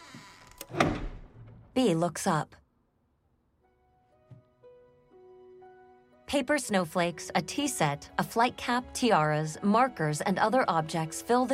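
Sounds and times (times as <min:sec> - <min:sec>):
ceiling panel in a closet sliding shut: 0:00.5 - 0:01.7
speech: 0:01.8 - 0:02.6, 0:06.3 - 0:11.5.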